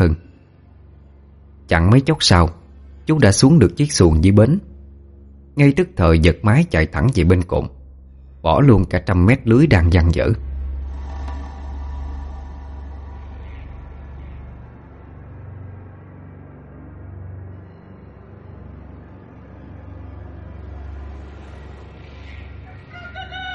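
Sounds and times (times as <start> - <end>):
speech: 0.0 - 0.2, 1.7 - 4.7, 5.6 - 7.8, 8.4 - 10.5
low rumble: 0.0 - 22.6
rooster crowing at dawn: 22.6 - 23.5.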